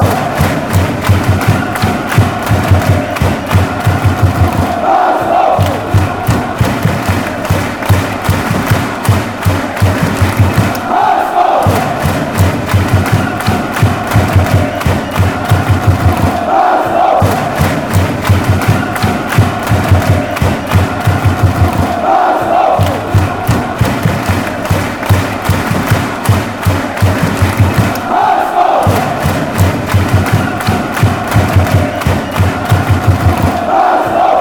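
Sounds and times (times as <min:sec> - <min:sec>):
crowd clapping: 0:00.0 - 0:34.3
fans chanting: 0:00.0 - 0:34.3.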